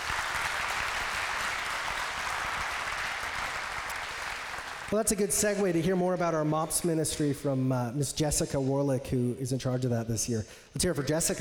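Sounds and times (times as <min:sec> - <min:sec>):
audience applause at a church ministry gathering: 0:00.0 - 0:05.0
speech: 0:04.9 - 0:11.3.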